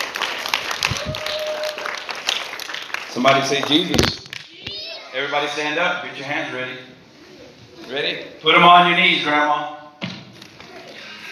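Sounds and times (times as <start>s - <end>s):
audience applause welcoming a guest: 0.0s - 4.0s
speech: 3.2s - 4.2s, 5.2s - 7.0s, 7.9s - 9.8s.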